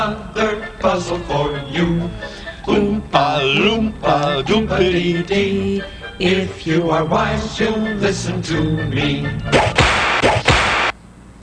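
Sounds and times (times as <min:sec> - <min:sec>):
speech: 0:00.0 - 0:10.0
whip cracking: 0:09.5 - 0:11.0.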